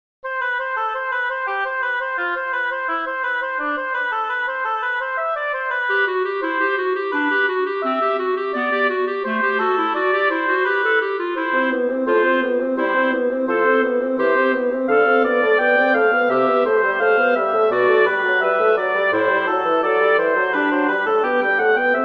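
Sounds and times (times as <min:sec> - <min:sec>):
woodwind trio playing a fugue in a major key: 0:00.3 - 0:22.0.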